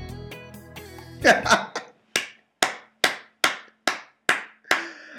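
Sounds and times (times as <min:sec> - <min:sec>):
speech: 0:01.2 - 0:01.6
laughter: 0:01.2 - 0:01.8
slow hand claps in a reverberant room: 0:01.7 - 0:05.1.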